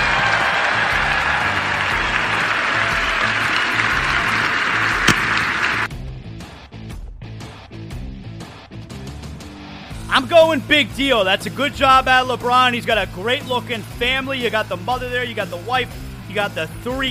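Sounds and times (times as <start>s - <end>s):
audience applause: 0.0s - 5.9s
speech: 10.2s - 17.1s.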